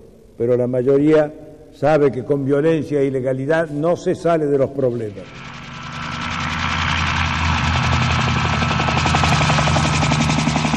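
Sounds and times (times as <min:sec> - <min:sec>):
speech: 0:00.4 - 0:05.5
helicopter rotor running: 0:05.2 - 0:10.7.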